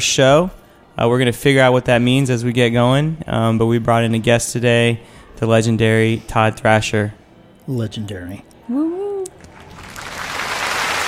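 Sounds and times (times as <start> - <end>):
speech: 0.0 - 8.9
canned applause track: 9.4 - 11.0.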